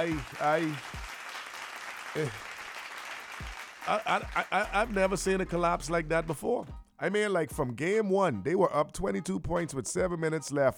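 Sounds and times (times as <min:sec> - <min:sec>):
speech: 0:00.0 - 0:01.0, 0:02.1 - 0:02.5, 0:03.9 - 0:10.7
round of applause: 0:00.0 - 0:04.7
laughter: 0:03.8 - 0:05.2.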